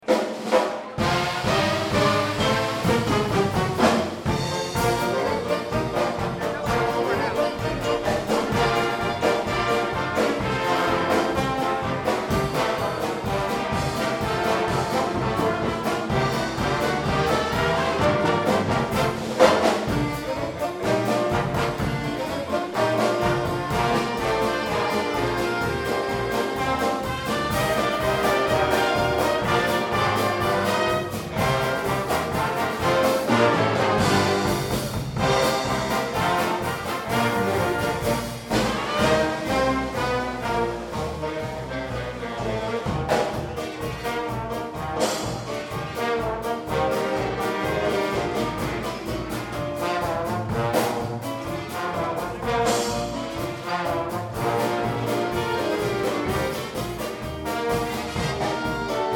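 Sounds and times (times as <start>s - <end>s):
polka medley: 0.0s - 59.1s.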